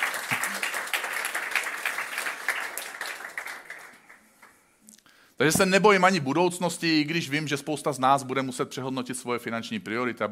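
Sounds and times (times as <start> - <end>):
audience applause: 0.0 - 4.6
speech: 5.4 - 10.3.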